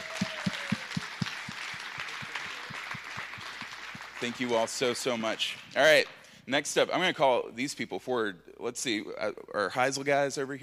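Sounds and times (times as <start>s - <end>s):
audience applauding: 0.0s - 5.7s
speech: 4.2s - 10.6s.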